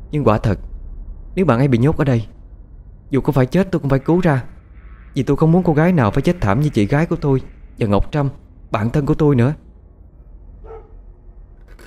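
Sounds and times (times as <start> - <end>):
speech: 0.1 - 0.7, 1.4 - 2.4, 3.1 - 4.5, 5.2 - 9.6
dog barking: 10.2 - 11.1
fingernails scraping a wall: 11.6 - 11.8.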